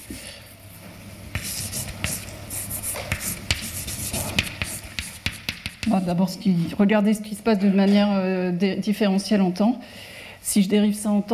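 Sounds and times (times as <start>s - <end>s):
lecturer writing an equation on a board: 1.3s - 6.2s
speech: 5.9s - 11.3s.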